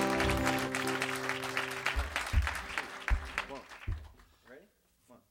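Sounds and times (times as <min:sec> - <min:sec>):
audience applause welcoming a band onto WFPK's Live Lunch: 0:00.0 - 0:04.2.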